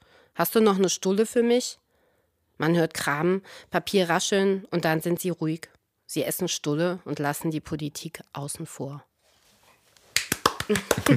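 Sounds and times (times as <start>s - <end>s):
speech: 0.4s - 1.8s, 2.6s - 9.1s, 10.7s - 11.1s
short burst of applause: 10.1s - 11.1s.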